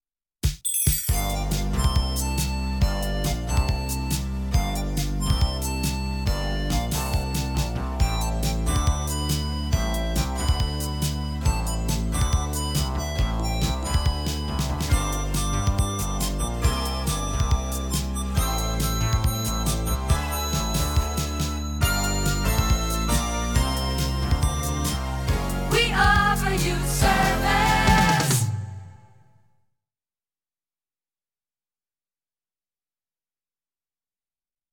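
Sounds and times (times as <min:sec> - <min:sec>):
music bed: 0:01.1 - 0:28.6.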